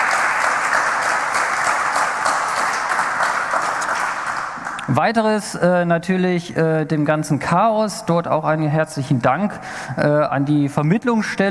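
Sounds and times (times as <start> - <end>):
audience applause: 0.0 - 4.8
speech: 4.9 - 11.4.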